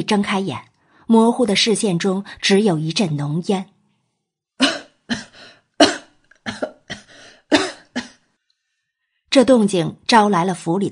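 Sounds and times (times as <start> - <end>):
speech: 0.0 - 3.7, 9.4 - 10.9
person coughing: 4.6 - 8.3.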